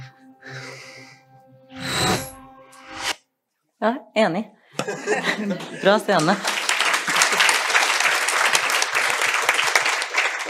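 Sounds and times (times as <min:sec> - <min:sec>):
speech: 0:03.8 - 0:06.6
laughter: 0:04.8 - 0:07.4
applause: 0:06.1 - 0:10.4.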